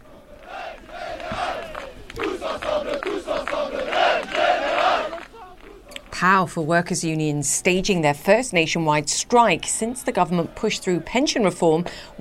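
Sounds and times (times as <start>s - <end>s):
protesters chanting at pension reform protests in France: 0.0s - 6.1s, 9.6s - 12.1s
speech: 6.2s - 12.1s.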